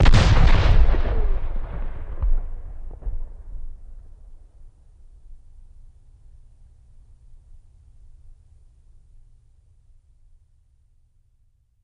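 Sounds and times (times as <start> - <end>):
single cannon shot: 0.0 - 4.4.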